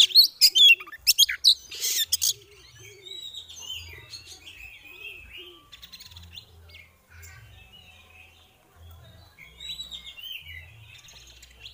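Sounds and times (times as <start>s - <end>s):
Oriental magpie-robin chirps, buzzy burst, whistles and cooing: 0.0s - 6.4s.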